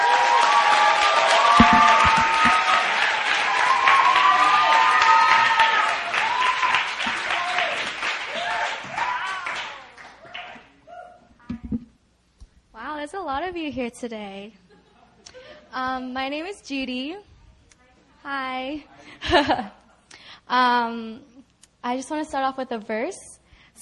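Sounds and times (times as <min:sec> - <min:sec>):
church crowd clapping to welcome a speaker: 0:00.0 - 0:10.7
speech: 0:13.4 - 0:14.6, 0:15.7 - 0:17.3, 0:18.2 - 0:19.8, 0:20.5 - 0:23.3.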